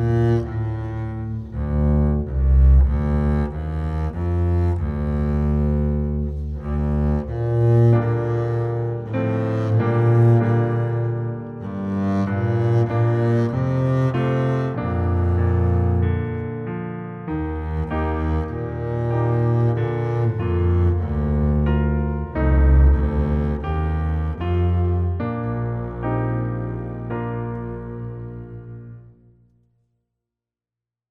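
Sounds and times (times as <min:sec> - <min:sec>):
double bass: 0:00.0 - 0:29.4.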